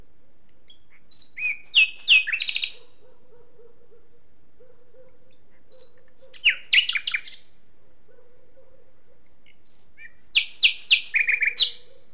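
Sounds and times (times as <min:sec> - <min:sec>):
Common nightingale singing: 0:00.6 - 0:03.0, 0:05.0 - 0:07.5, 0:09.4 - 0:12.1.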